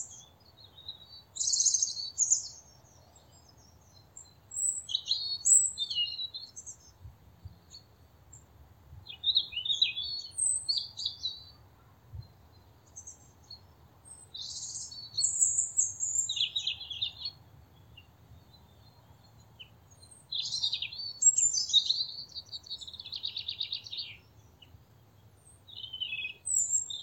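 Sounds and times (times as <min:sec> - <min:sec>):
European robin singing high phrases: 0:00.0 - 0:02.7, 0:04.5 - 0:06.8, 0:09.1 - 0:11.6, 0:14.2 - 0:17.4, 0:20.1 - 0:24.3, 0:25.7 - 0:27.0.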